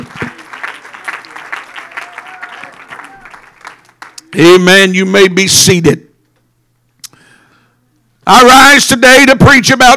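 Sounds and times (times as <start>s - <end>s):
audience clapping hands in praise: 0.0s - 4.5s
speech: 4.3s - 6.1s, 8.3s - 9.9s.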